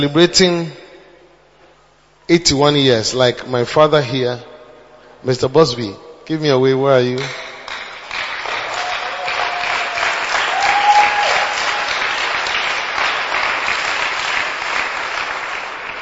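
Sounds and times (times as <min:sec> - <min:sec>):
speech: 0:00.0 - 0:00.8, 0:02.3 - 0:04.5, 0:05.2 - 0:07.5
church audience clapping: 0:07.2 - 0:16.0.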